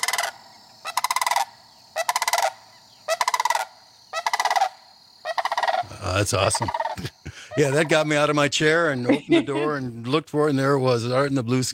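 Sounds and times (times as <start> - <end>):
sandhill crane calling in rolling rattling bursts: 0.0 - 8.3
speech: 6.0 - 11.7.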